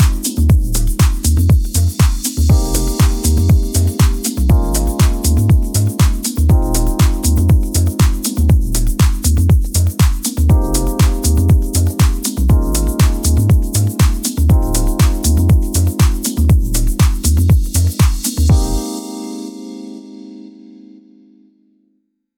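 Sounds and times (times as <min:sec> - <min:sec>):
launchpad music in F minor: 0:00.0 - 0:21.3.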